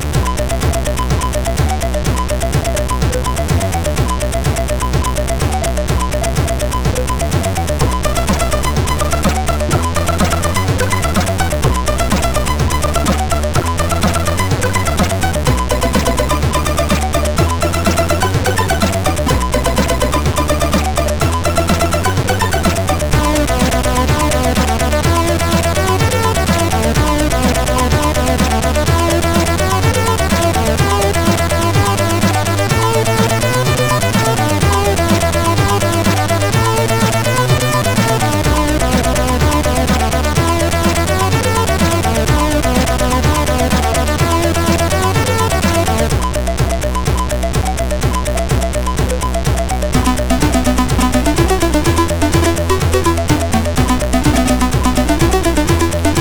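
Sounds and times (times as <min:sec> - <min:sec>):
MOS6581R3 SID chip intro tune: 0:00.2 - 0:56.1.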